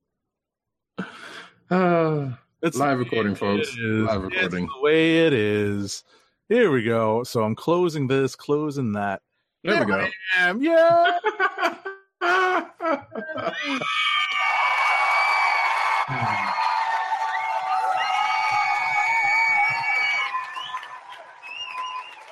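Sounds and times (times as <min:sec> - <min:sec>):
laughter: 0:01.0 - 0:05.9, 0:09.7 - 0:14.2, 0:16.0 - 0:17.0, 0:18.6 - 0:20.3
speech: 0:01.7 - 0:01.9, 0:02.6 - 0:11.8, 0:12.6 - 0:14.0
cheering crowd sound effect with whoops and whistles: 0:02.6 - 0:05.7, 0:09.7 - 0:10.1, 0:13.5 - 0:22.3.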